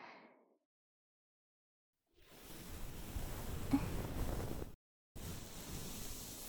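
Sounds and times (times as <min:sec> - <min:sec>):
ASMR ear massage sounds: 0:02.3 - 0:06.4.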